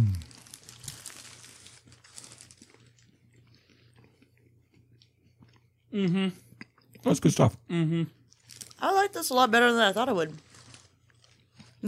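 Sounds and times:
person chewing a chicken biscuit: 0.0s - 7.2s, 8.2s - 8.8s, 10.4s - 11.8s
speech: 6.0s - 6.4s, 7.0s - 8.2s, 9.1s - 10.5s.

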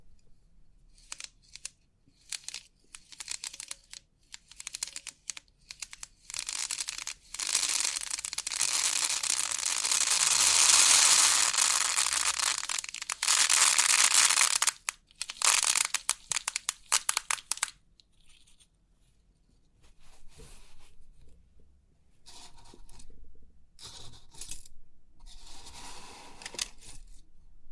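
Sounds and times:
3D pin art pins clicking and rattling: 1.0s - 9.6s, 10.4s - 17.7s
continuous hiss: 6.3s - 17.7s.

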